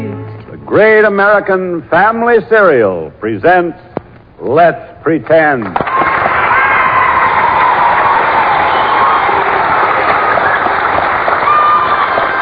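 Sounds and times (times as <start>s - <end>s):
speech: 0.7s - 5.9s
studio audience applause: 5.8s - 12.4s.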